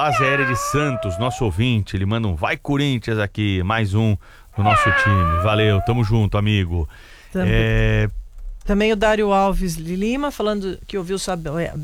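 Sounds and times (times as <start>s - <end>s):
cat meowing: 0.0s - 1.6s, 4.6s - 6.1s
speech: 0.0s - 11.8s.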